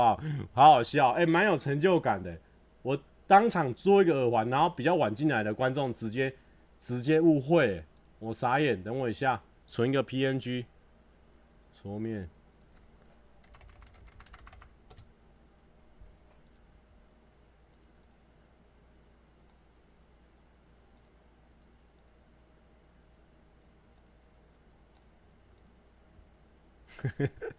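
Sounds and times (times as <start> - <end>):
speech: 0.0 - 10.7, 11.8 - 12.4, 27.0 - 27.5
typing on a computer keyboard: 12.0 - 15.1.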